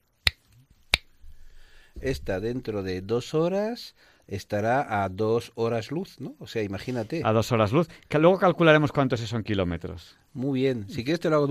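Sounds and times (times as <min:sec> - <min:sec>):
finger snap: 0:00.2 - 0:01.2
speech: 0:02.0 - 0:11.4.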